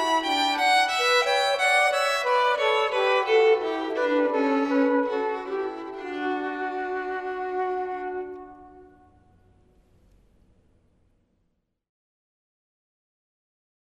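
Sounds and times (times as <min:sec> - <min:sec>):
flute canon: 0:00.0 - 0:09.7.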